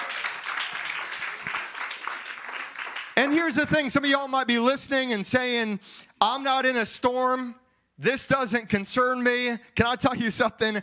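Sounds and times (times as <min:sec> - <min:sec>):
audience clapping in worship: 0:00.0 - 0:03.6
speech: 0:03.2 - 0:10.8.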